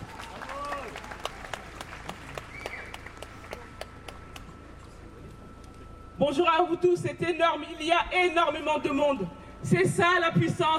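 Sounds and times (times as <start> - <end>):
people shouting and cheering: 0.0 - 1.1
crowd applauding: 0.0 - 4.5
speech: 6.2 - 10.7.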